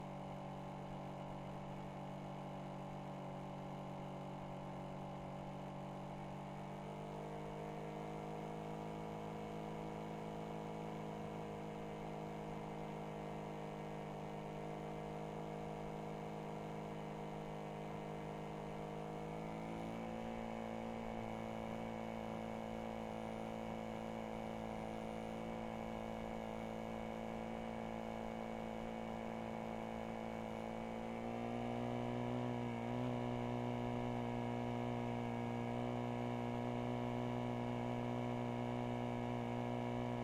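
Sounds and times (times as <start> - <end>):
Yamaha WR450F engine starting and driving at steady RPM, onboard: 0.1 - 40.2.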